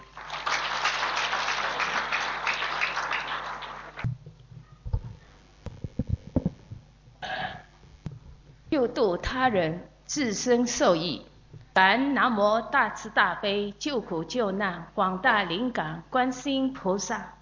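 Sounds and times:
audience applause: 0.0 - 4.1
scattered low thumps and rustling: 4.1 - 6.9
speech: 9.0 - 17.4.

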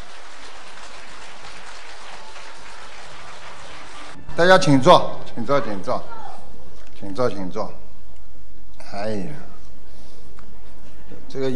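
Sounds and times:
crowd applause: 0.0 - 4.3
speech: 4.4 - 6.2, 7.0 - 7.8, 8.9 - 9.5, 11.3 - 11.5.

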